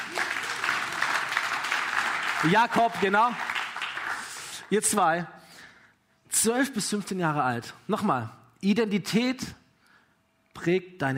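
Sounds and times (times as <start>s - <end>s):
crowd applauding: 0.0s - 4.7s
speech: 2.4s - 3.5s, 4.7s - 5.4s, 6.4s - 9.6s, 10.6s - 11.1s.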